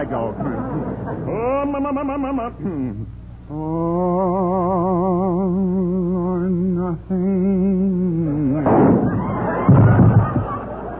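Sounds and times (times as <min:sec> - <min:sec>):
laughter: 0:00.0 - 0:02.9, 0:08.5 - 0:10.9
speech: 0:00.0 - 0:08.7
person singing with vibrato: 0:01.3 - 0:08.7
gunshot sound effects in a radio comedy: 0:08.6 - 0:10.4.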